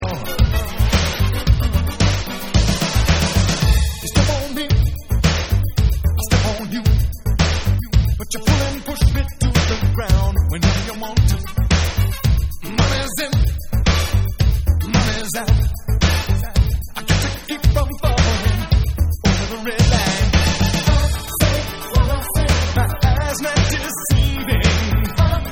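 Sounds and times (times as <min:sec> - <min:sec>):
vocals: 0:00.0 - 0:25.5.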